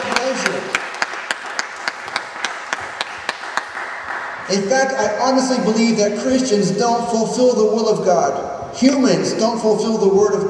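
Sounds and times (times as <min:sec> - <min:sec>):
audience applause: 0:00.0 - 0:04.8
speech: 0:04.5 - 0:10.4.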